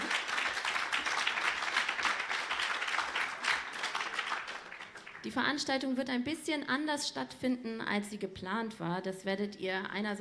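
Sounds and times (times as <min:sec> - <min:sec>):
audience applause: 0:00.0 - 0:05.2
speech: 0:05.2 - 0:10.1.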